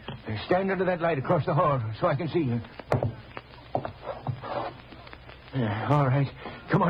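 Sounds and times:
speech: 0:00.5 - 0:02.8, 0:05.5 - 0:06.8
letter scraping and rustling as slid under a door: 0:03.8 - 0:04.8.

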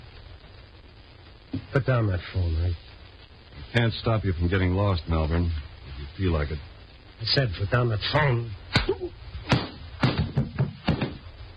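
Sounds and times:
speech: 0:01.6 - 0:02.9, 0:03.6 - 0:09.6
slap to the face: 0:08.7 - 0:11.2
smacking impacts: 0:08.7 - 0:11.2.

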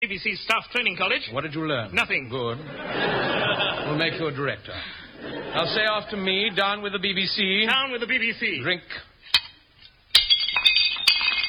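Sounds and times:
speech: 0:00.1 - 0:09.1
laughter: 0:02.6 - 0:07.0
drinking glasses smashed in a fireplace: 0:09.3 - 0:11.4
scattered glass shards clinking: 0:09.3 - 0:11.4.

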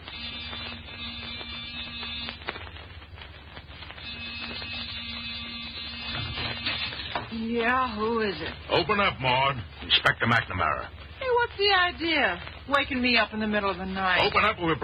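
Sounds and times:
door buzzer being pressed: 0:00.0 - 0:02.5, 0:04.0 - 0:07.4
speech: 0:07.6 - 0:14.8.

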